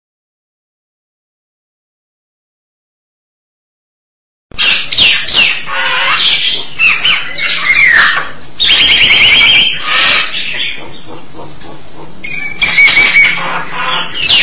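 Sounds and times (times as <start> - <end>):
starling song: 4.6 - 14.4.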